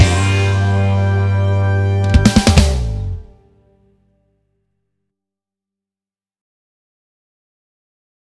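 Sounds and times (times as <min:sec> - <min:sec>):
funk remix: 0:00.0 - 0:01.4, 0:02.0 - 0:03.4.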